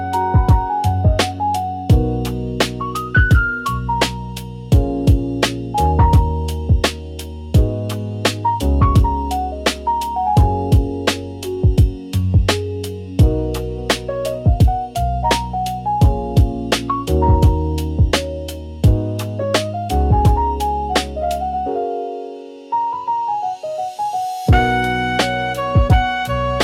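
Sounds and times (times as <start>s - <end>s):
dreamy floating relaxing lofi music: 0.0s - 26.6s.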